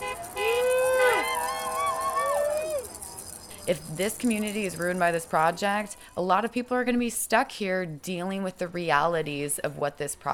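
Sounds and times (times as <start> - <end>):
car horns honking: 0.0 - 1.3
protesters cheering: 0.0 - 3.4
mini maracas shaking: 0.0 - 6.4
speech: 3.7 - 10.3.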